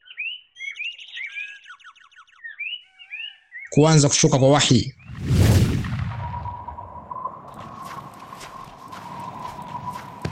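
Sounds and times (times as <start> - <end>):
speech: 3.8 - 5.0
loud opening rumble: 5.0 - 10.3
quick successive footsteps of someone hurrying closer: 7.5 - 10.3.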